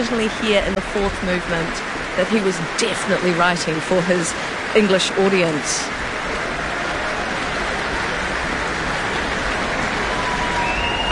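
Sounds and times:
speech: 0.0s - 6.1s
concert audience applause and cheering: 6.0s - 11.1s
thin high whistle: 10.2s - 11.1s.

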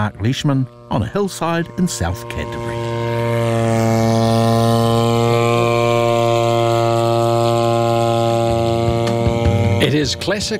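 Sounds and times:
speech: 0.0s - 2.7s, 9.9s - 10.5s
drone flying overhead: 0.0s - 10.5s.

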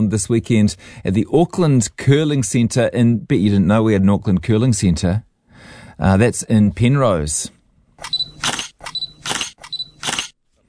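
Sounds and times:
speech: 0.0s - 8.1s
camera shutters clicking: 8.0s - 10.4s.

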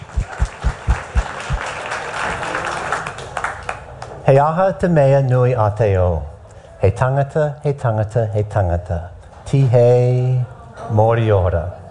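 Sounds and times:
dull low thumps: 0.0s - 1.6s
audience applause welcoming a professor to the stage: 0.0s - 4.0s
speech: 4.3s - 11.8s.

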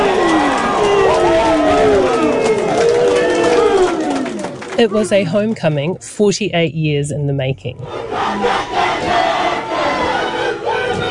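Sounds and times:
crowd of fans cheering team arrival: 0.0s - 5.3s, 7.8s - 11.0s
speech: 4.8s - 8.6s.

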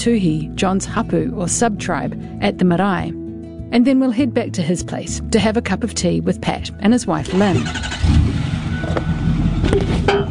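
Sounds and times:
speech: 0.0s - 8.2s
truck engine rumbling: 7.2s - 10.2s.

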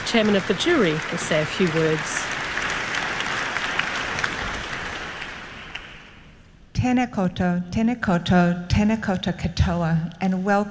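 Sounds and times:
applause: 0.0s - 6.4s
speech: 0.1s - 2.4s, 6.8s - 10.7s.

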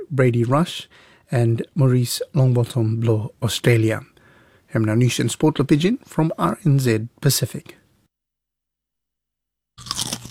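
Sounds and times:
speech: 0.1s - 4.1s, 4.7s - 7.8s
potato chip crunching: 9.8s - 10.3s.

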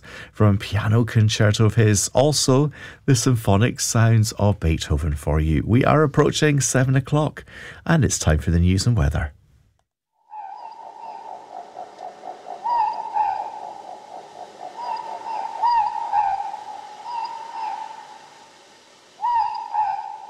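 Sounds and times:
speech: 0.4s - 9.4s
morepork ruru owl calling: 10.2s - 20.2s.

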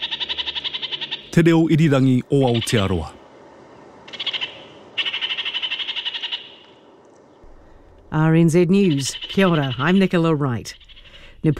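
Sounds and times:
kākāriki New Zealand parakeet chattering call: 0.0s - 1.4s, 4.1s - 6.7s, 8.6s - 11.5s
speech: 1.4s - 3.2s, 8.1s - 10.8s, 11.4s - 11.5s.

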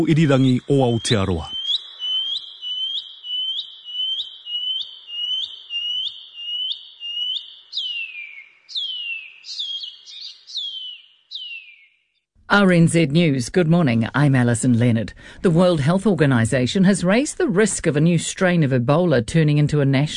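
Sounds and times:
speech: 0.0s - 1.6s, 12.5s - 20.1s
shining cuckoo call: 0.0s - 11.8s.

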